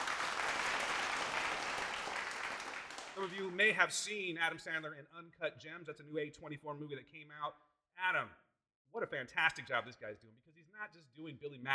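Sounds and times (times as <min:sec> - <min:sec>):
audience clapping at a live comedy show: 0:00.0 - 0:03.8
speech: 0:03.2 - 0:11.7.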